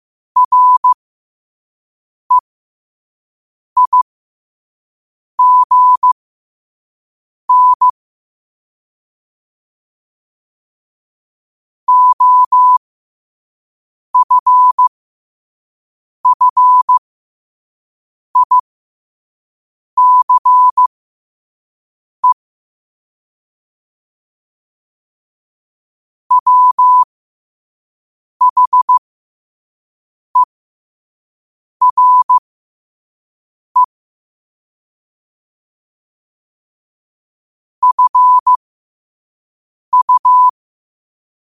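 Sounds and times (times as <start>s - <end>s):
morse code at 5 wpm: 0.4s - 1.0s, 3.8s - 4.1s, 5.4s - 6.2s, 7.5s - 8.0s, 11.9s - 12.8s, 14.2s - 14.8s, 16.2s - 17.0s, 18.4s - 18.6s, 20.0s - 20.9s, 26.3s - 27.1s, 28.4s - 29.0s, 31.8s - 32.4s, 37.8s - 38.6s, 39.9s - 40.6s.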